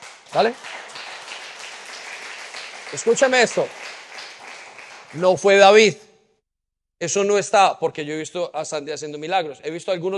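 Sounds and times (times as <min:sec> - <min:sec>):
audience applause: 0:00.0 - 0:05.8
speech: 0:00.3 - 0:00.8, 0:02.9 - 0:03.9, 0:05.1 - 0:06.0, 0:07.0 - 0:10.1.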